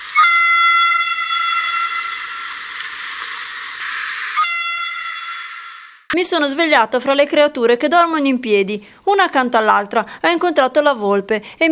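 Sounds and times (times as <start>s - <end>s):
train whistle blaring: 0.0s - 6.1s
speech: 6.2s - 11.7s.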